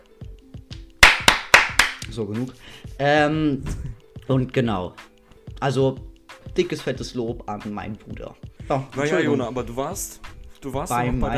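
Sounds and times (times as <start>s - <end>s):
applause: 1.0s - 2.0s
speech: 2.1s - 11.3s.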